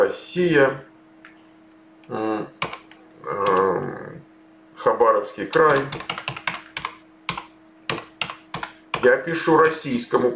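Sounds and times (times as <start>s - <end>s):
speech: 0.0s - 0.9s, 2.1s - 2.6s, 3.2s - 3.5s, 4.8s - 6.3s, 9.0s - 10.3s
keyboard typing: 2.6s - 3.7s, 5.5s - 9.2s.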